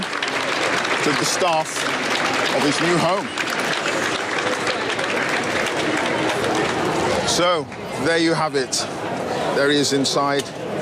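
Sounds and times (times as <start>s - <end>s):
applause inside a building: 0.0s - 8.1s
speech: 1.0s - 3.8s, 7.3s - 10.6s.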